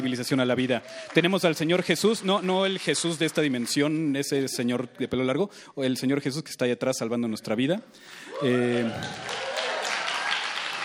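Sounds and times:
audience applause: 0.0 - 4.4, 8.3 - 10.8
speech: 0.0 - 9.5.

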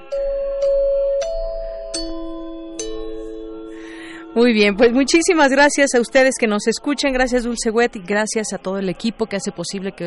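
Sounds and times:
xylophone chime melody: 0.0 - 6.9
speech: 4.4 - 10.0.

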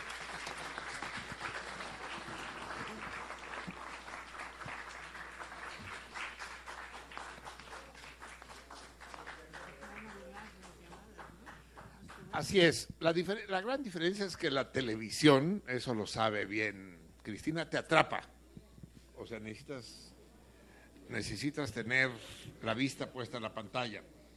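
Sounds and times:
crowd applause: 0.0 - 12.3
speech: 12.4 - 18.3, 19.3 - 20.1, 21.1 - 24.1.

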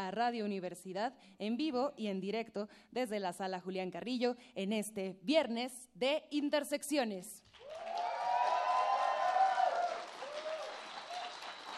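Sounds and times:
speech: 0.0 - 8.1
concert audience applause and cheering: 7.5 - 11.7.

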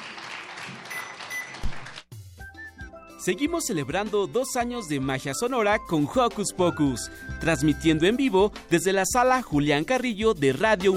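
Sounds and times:
applause: 0.0 - 2.1
speech: 3.2 - 10.9.

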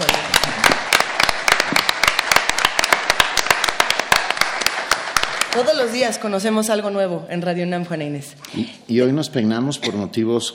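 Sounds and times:
applause for the pianist: 0.0 - 6.1
speech: 5.6 - 10.5.

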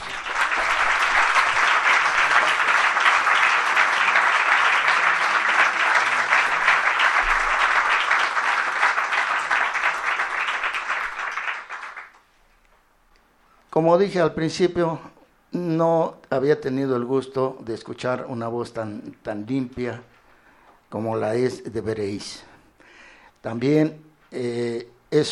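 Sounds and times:
audience applause: 0.0 - 12.2
speech: 13.8 - 15.1, 15.8 - 20.2, 20.9 - 22.5, 23.4 - 25.3.

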